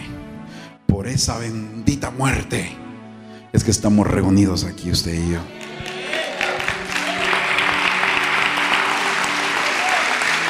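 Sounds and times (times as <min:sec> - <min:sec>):
speech: 0:01.0 - 0:02.8, 0:03.5 - 0:05.6
church congregation applauding: 0:05.5 - 0:10.4.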